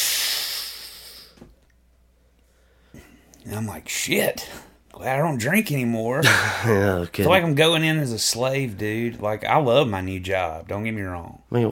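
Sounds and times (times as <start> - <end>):
voice imitating the hiss of an alcohol-sniffing scanner: 0.0 - 1.4
speech: 3.5 - 11.6.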